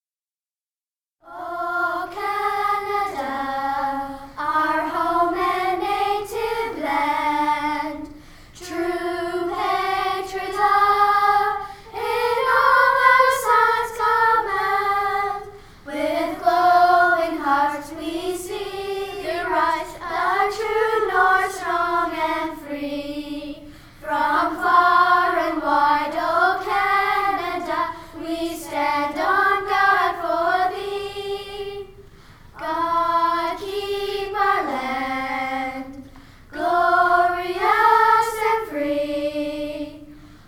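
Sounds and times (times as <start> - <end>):
choir singing an anthem in English: 1.2 - 40.3.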